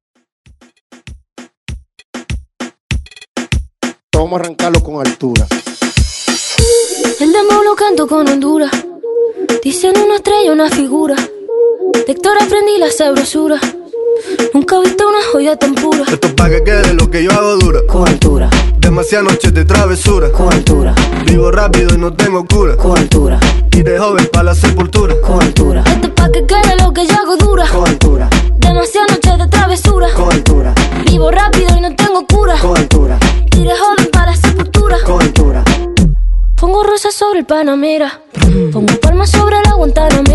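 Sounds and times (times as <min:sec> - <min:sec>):
reggaeton music: 0:00.6 - 0:40.3.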